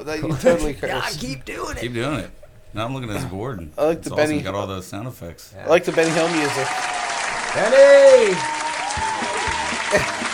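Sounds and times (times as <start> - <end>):
speech: 0.0 - 6.9, 7.6 - 9.1, 9.9 - 10.2
audience clapping hard: 5.9 - 10.3.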